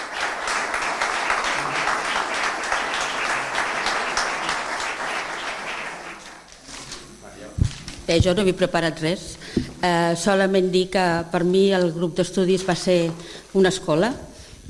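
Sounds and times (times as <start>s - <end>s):
audience applause: 0.0s - 6.5s
speech: 8.1s - 14.6s.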